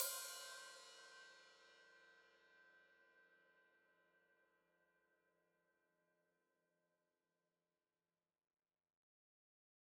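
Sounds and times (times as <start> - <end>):
open hi-hat: 0.0 - 1.3.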